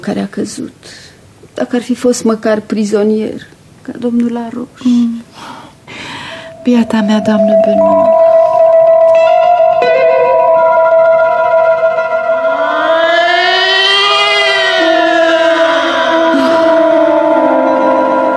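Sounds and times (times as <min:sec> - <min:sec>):
speech: 0:00.0 - 0:05.6, 0:06.6 - 0:08.2
air raid alarm siren: 0:05.9 - 0:18.3.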